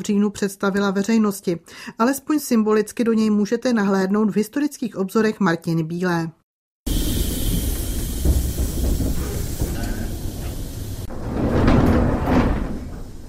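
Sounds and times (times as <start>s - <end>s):
speech: 0.0s - 6.4s
steam locomotive hauling a replica legion train arriving at Žižkov freight station: 6.9s - 13.2s
replica legion train carriage doors sliding open: 7.7s - 13.2s.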